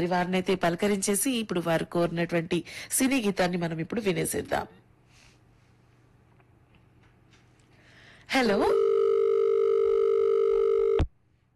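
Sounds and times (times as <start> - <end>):
speech: 0.0 - 4.8, 8.3 - 8.9
telephone dial tone after a call is cut off: 8.8 - 11.1.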